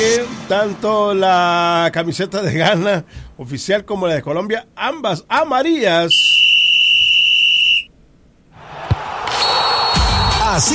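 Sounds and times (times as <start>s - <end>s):
speech: 0.0s - 6.6s, 10.5s - 10.7s
referee's whistle starting the football match: 6.1s - 7.9s, 9.3s - 10.7s.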